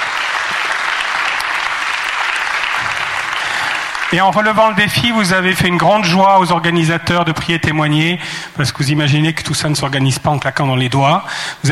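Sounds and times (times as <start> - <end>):
audience applauding: 0.0 - 5.1
speech: 4.1 - 11.6.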